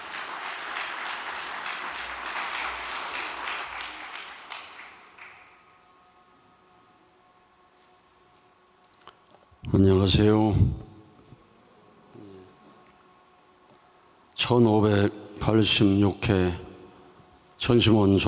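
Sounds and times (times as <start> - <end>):
audience applause: 0.0 - 5.6
speech: 9.8 - 10.8, 14.5 - 16.7, 17.6 - 18.2.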